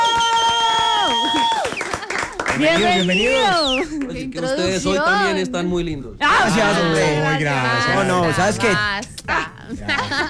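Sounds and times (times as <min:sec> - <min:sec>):
audience applause: 0:00.0 - 0:04.1
speech: 0:02.6 - 0:10.2
laughter: 0:09.4 - 0:10.2.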